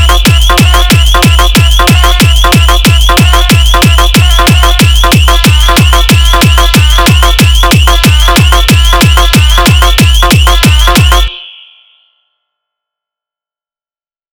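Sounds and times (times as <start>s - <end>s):
hard bass remix song: 0.0s - 11.3s.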